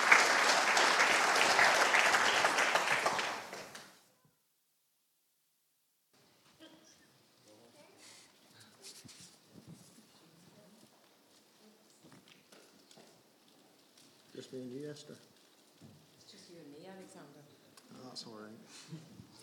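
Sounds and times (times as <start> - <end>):
applause: 0.0 - 4.0.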